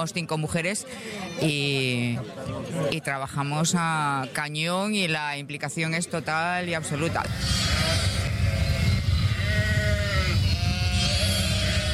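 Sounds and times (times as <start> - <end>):
speech: 0.0 - 8.1
sheep bleating: 6.9 - 11.9
steady low rumble: 7.3 - 11.9.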